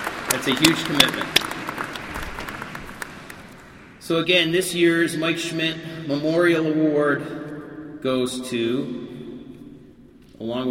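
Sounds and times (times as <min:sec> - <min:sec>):
audience applause: 0:00.0 - 0:04.0
speech: 0:00.3 - 0:01.7, 0:04.1 - 0:07.4, 0:08.0 - 0:09.2, 0:10.4 - 0:10.6.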